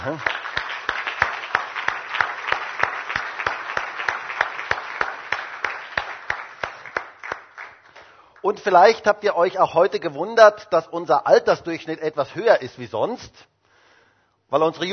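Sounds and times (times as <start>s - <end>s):
speech: 0.0s - 0.4s, 8.4s - 13.5s, 14.5s - 14.9s
audience applause: 0.0s - 8.0s.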